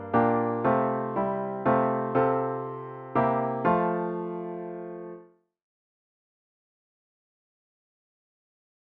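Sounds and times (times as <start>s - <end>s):
solo piano: 0.0s - 5.3s.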